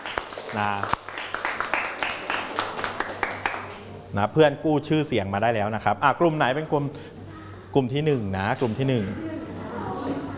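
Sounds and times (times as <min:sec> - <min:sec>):
classroom applause: 0:00.0 - 0:03.8
speech: 0:00.5 - 0:01.0, 0:04.1 - 0:07.1, 0:07.7 - 0:09.5.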